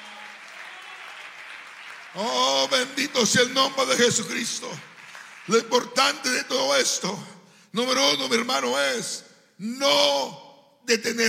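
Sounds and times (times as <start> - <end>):
audience clapping: 0.0 - 6.6
speech: 2.1 - 4.9, 5.5 - 11.2.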